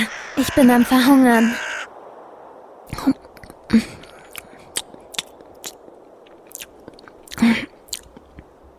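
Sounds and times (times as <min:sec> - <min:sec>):
speech: 0:00.0 - 0:01.7, 0:02.9 - 0:04.0
crunching and chewing a dry piece of bread: 0:04.0 - 0:08.4.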